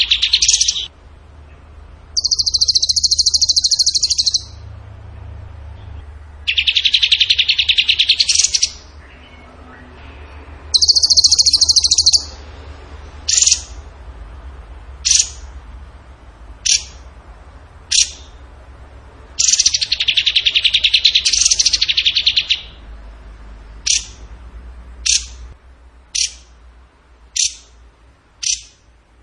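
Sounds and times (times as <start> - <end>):
bird trilling: 0.0 - 0.9, 1.5 - 4.7, 6.4 - 12.4, 13.2 - 13.8, 15.0 - 15.5, 16.6 - 17.0, 17.9 - 18.4, 19.4 - 22.8, 23.8 - 24.3, 25.0 - 25.4, 26.1 - 26.5, 27.3 - 27.8, 28.4 - 28.8.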